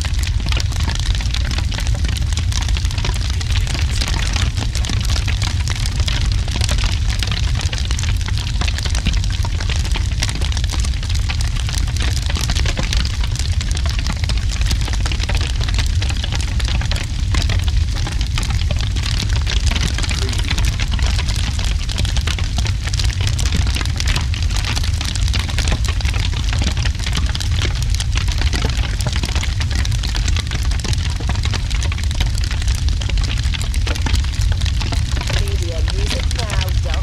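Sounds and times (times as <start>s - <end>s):
heavy fire flames: 0.0s - 37.0s.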